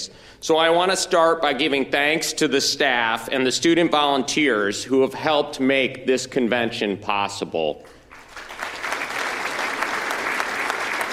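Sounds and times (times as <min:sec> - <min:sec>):
speech: 0:00.4 - 0:08.0
audience clapping: 0:08.1 - 0:11.1.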